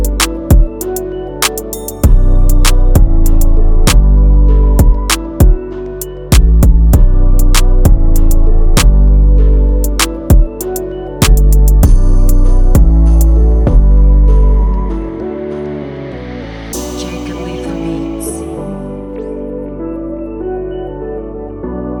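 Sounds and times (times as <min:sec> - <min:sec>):
melodic type beat: 0:00.0 - 0:15.2.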